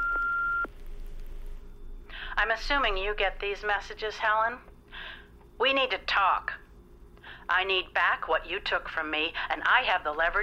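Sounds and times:
answering machine beep: 0.0s - 0.7s
speech: 2.4s - 4.7s, 5.6s - 6.6s, 7.5s - 10.4s.

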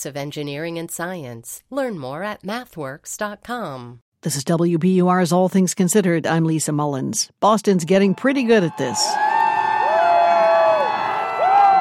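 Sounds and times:
speech: 0.0s - 9.4s
crowd roar at Red Sox World Series rally in Boston: 8.1s - 11.8s
fans whooping at Red Sox World Series victory rally in Boston: 8.2s - 11.8s.

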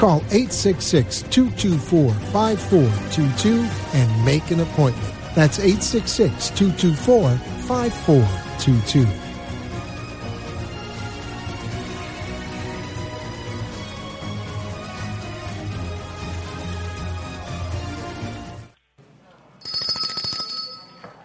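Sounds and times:
speech: 0.0s - 9.2s
bell ringing: 19.6s - 21.2s.

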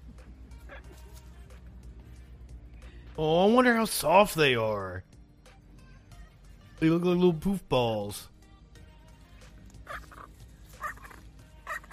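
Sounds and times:
speech: 3.2s - 5.1s, 6.8s - 8.3s
baby Chilean flamingo chicks gobbling at the Cotswold Wildlife Park: 9.7s - 11.9s.

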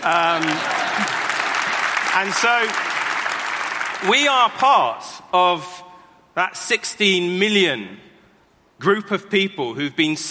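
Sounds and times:
speech: 0.0s - 1.2s, 2.2s - 2.9s, 4.0s - 5.8s, 6.4s - 8.1s, 8.8s - 10.3s
audience clapping: 0.0s - 4.8s.

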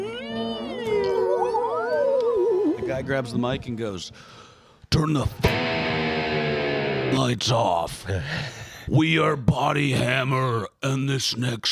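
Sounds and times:
voice imitating a theremin: 0.0s - 2.9s
speech: 2.9s - 5.8s, 7.1s - 11.6s.

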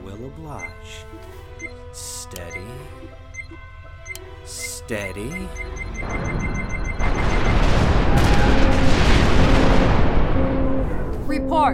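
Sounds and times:
speech: 0.1s - 3.7s, 4.4s - 7.4s, 11.5s - 11.7s
starship weapons firing in an audio drama battle: 7.1s - 10.5s.

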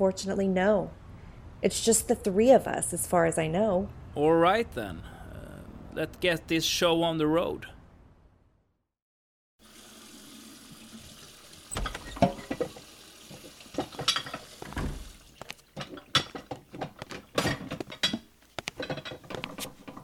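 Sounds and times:
speech: 0.0s - 1.0s, 1.6s - 5.1s, 6.0s - 7.8s
water splashing while washing things: 9.6s - 17.4s.

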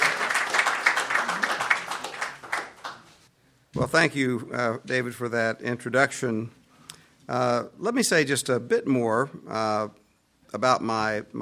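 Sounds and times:
audience applause welcoming a university lecturer at Boston University: 0.0s - 3.1s
speech: 3.8s - 6.6s, 7.3s - 11.3s.

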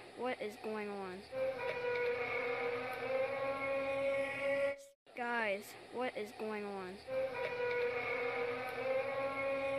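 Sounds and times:
speech: 0.2s - 2.4s, 5.2s - 8.1s
mysterious trumpet-like sky sound: 1.4s - 4.8s, 7.1s - 9.7s.

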